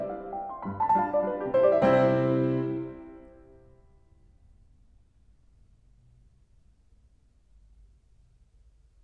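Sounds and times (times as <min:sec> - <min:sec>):
mazurka on piano: 0:00.0 - 0:04.0.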